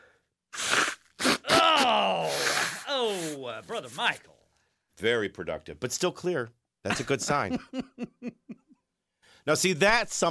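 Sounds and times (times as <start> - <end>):
person blowing nose: 0.5 - 3.6
speech: 3.4 - 4.3, 5.0 - 8.6, 9.4 - 10.2
laughter: 6.9 - 8.8.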